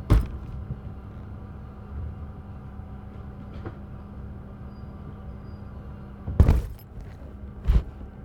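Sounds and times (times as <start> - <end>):
suitcase being loaded on a plane: 0.1 - 0.7, 6.4 - 8.1.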